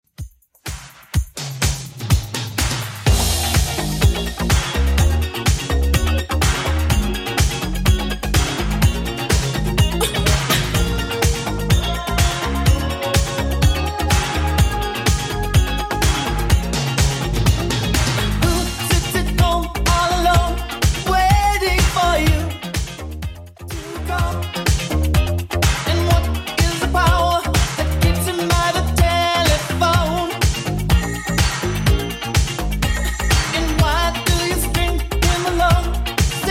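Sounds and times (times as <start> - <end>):
80s Redrum drum machine beat: 0.0 - 36.4.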